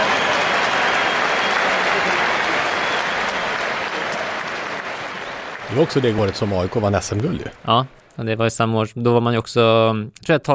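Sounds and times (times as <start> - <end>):
stadium crowd applauding: 0.0 - 8.0
speech: 5.7 - 10.5.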